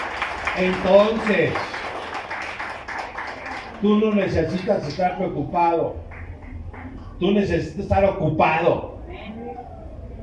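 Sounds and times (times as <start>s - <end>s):
audience applause: 0.0s - 5.0s
speech: 0.6s - 1.8s, 3.8s - 6.0s, 7.2s - 8.9s.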